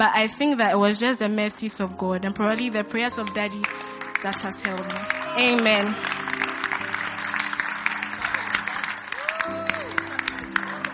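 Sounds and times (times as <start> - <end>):
speech: 0.0 - 6.3
church congregation applause: 3.3 - 10.9.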